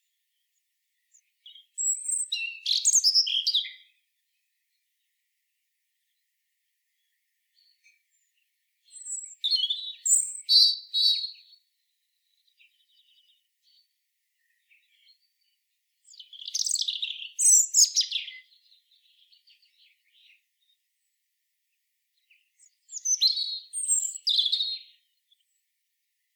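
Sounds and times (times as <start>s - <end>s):
European robin singing: 1.1s - 4.0s, 7.0s - 11.6s, 12.3s - 20.8s, 22.2s - 25.6s.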